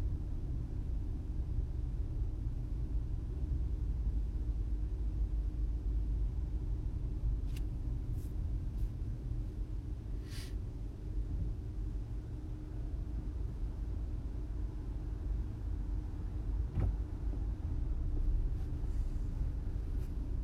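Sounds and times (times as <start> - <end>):
idling traffic: 0.0 - 20.4.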